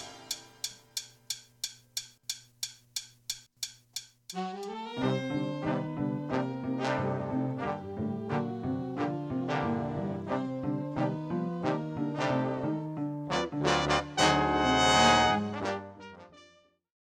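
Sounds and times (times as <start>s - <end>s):
piano: 4.8s - 16.2s.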